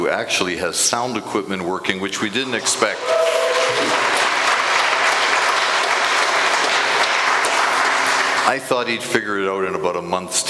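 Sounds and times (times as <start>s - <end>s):
speech: 0.0s - 4.1s, 8.5s - 10.4s
round of applause: 2.4s - 9.0s.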